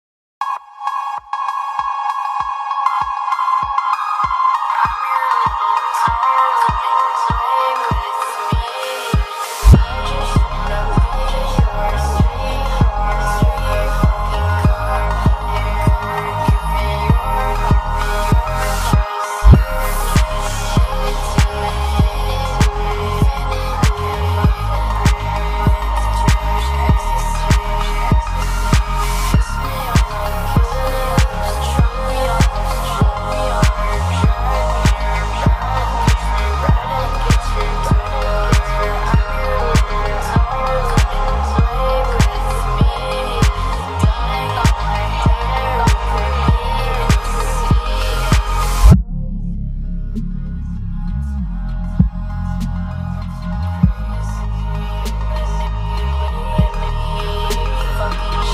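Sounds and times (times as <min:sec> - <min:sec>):
phonk remix: 0:00.4 - 0:58.5.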